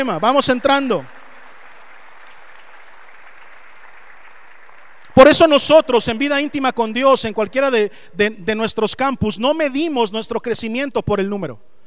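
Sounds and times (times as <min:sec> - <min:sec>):
speech: 0:00.0 - 0:01.2, 0:05.2 - 0:11.8
audience applause: 0:00.0 - 0:05.3.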